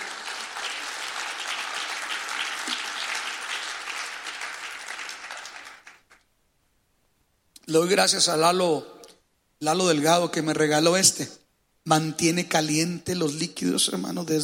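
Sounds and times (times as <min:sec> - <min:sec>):
audience applause: 0:00.0 - 0:06.2
speech: 0:07.7 - 0:09.0, 0:09.6 - 0:14.4.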